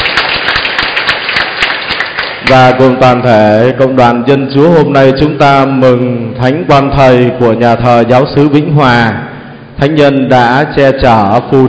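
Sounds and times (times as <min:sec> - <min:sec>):
church congregation applause at the patronal feast of Vinh Hoa parish church: 0:00.0 - 0:03.0
speech: 0:02.5 - 0:11.6.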